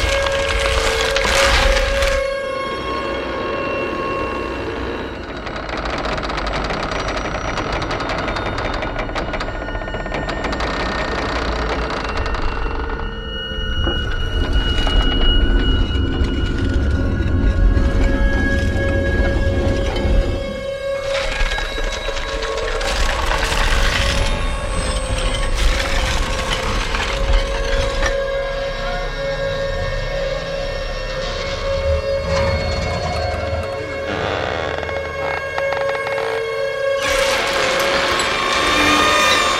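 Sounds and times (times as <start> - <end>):
creaking: 0.0 - 39.5
screeching: 0.0 - 39.5.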